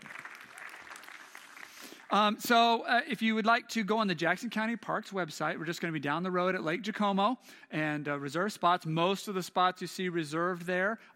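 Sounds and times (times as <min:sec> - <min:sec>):
audience applause: 0:00.0 - 0:02.4
speech: 0:02.1 - 0:11.1.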